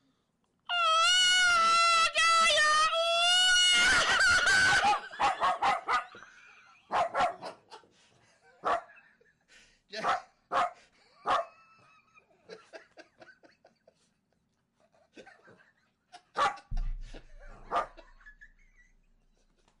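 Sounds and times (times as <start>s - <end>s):
person imitating a bird's mating call: 0.7s - 4.3s
laughter: 3.5s - 9.8s, 11.0s - 19.7s.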